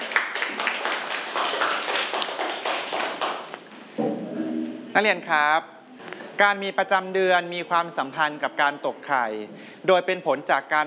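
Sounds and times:
students clapping: 0.0s - 3.8s
speech: 5.0s - 5.8s, 6.4s - 10.8s.

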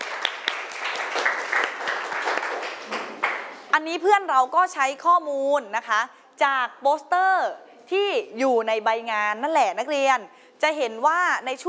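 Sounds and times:
classroom applause for a student: 0.0s - 3.7s
speech: 3.8s - 11.6s.

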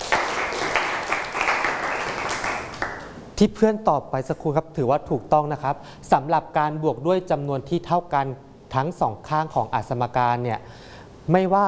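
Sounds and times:
classroom applause: 0.0s - 3.2s
speech: 3.4s - 11.6s.

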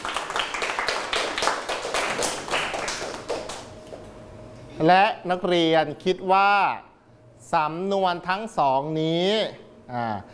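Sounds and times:
students clapping for a classmate: 0.0s - 4.0s
speech: 4.8s - 10.3s.

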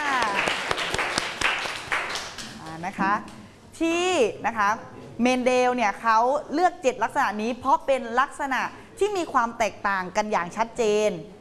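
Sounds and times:
classroom applause: 0.0s - 2.7s
speech: 2.9s - 11.3s.

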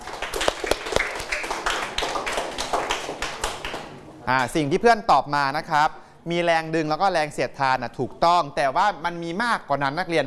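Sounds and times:
classroom students clapping: 0.0s - 4.2s
speech: 4.3s - 10.2s.

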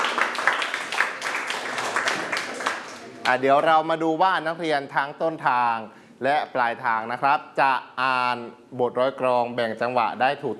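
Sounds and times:
students clapping for themselves: 0.0s - 3.4s
speech: 3.3s - 10.5s.

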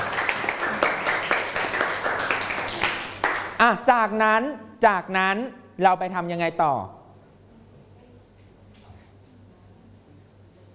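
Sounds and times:
audience clapping: 0.0s - 3.6s
speech: 3.6s - 7.0s.

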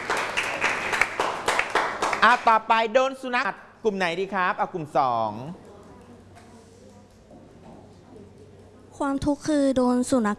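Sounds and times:
classroom applause: 0.0s - 2.6s
speech: 2.2s - 5.6s, 9.0s - 10.3s.

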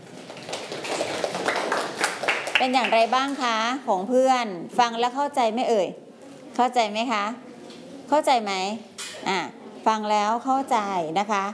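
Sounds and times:
audience clapping after a presentation: 0.0s - 3.1s
speech: 2.6s - 6.0s, 6.6s - 7.4s, 8.1s - 11.5s.

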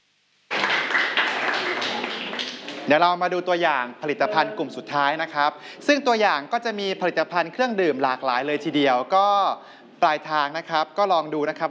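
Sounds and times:
audience applause after a Thai presentation of an orange juice drink: 0.5s - 3.0s
speech: 2.9s - 11.6s.

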